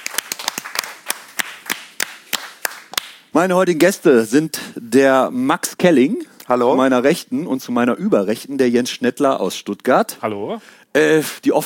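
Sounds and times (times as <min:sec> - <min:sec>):
audience applause: 0:00.0 - 0:03.0
speech: 0:03.4 - 0:11.6.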